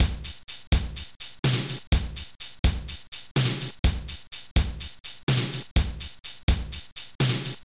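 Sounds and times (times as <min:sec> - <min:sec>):
music beat: 0:00.0 - 0:07.6.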